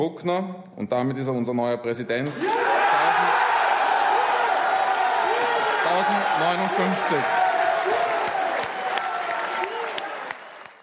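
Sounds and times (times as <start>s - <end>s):
speech: 0.0s - 2.8s, 6.0s - 7.4s
supporters cheering: 2.3s - 10.8s
applause of supporters: 3.3s - 10.8s.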